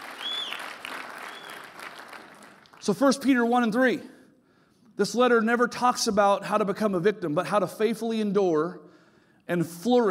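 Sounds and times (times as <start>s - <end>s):
church congregation applauding: 0.0s - 3.3s
faint whistle: 0.1s - 1.7s
speech: 2.9s - 4.2s, 5.0s - 8.9s, 9.5s - 10.0s.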